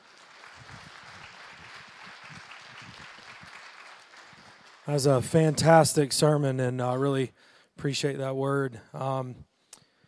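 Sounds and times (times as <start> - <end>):
crowd applause: 0.0 - 6.0
speech: 4.9 - 9.5.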